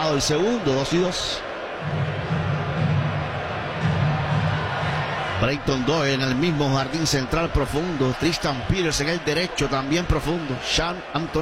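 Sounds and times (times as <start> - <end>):
speech: 0.0 - 2.4, 5.4 - 11.3
steady crowd noise: 0.0 - 11.3.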